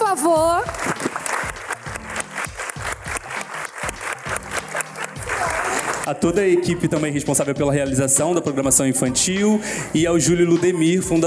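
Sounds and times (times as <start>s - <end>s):
audience applause: 0.6s - 6.3s
speech: 6.1s - 11.2s.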